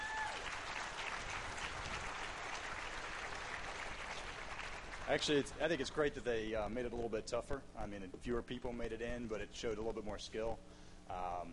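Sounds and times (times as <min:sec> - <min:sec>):
crowd applause: 0:00.0 - 0:05.8
speech: 0:05.1 - 0:11.5.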